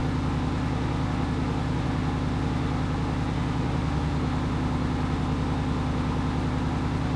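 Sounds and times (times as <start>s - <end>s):
engines: 0.0s - 7.1s.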